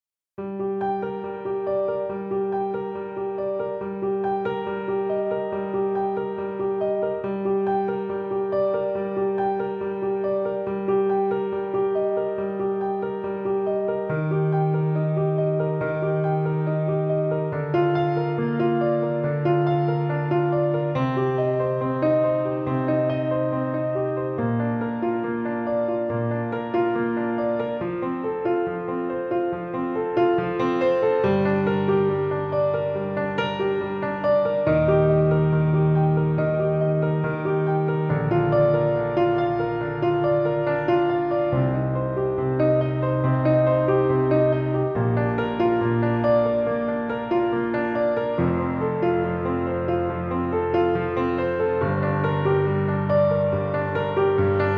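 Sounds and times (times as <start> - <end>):
piano: 0.0 - 54.7.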